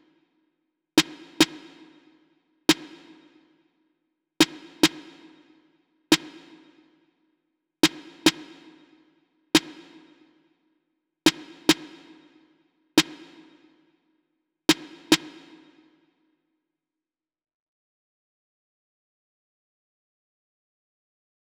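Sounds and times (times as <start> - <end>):
snare drum: 1.0 - 2.1, 2.7 - 3.4, 4.4 - 5.4, 6.1 - 6.8, 7.8 - 8.8, 9.6 - 10.3, 11.3 - 13.8, 14.7 - 16.0.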